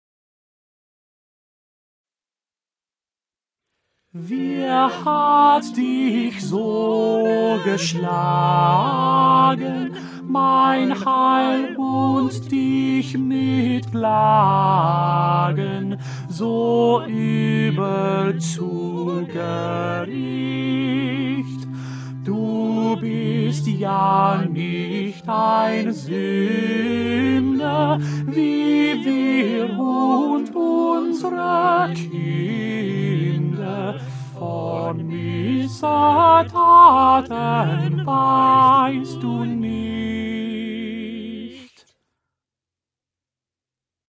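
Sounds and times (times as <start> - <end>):
tenor singing: 4.2 - 41.9.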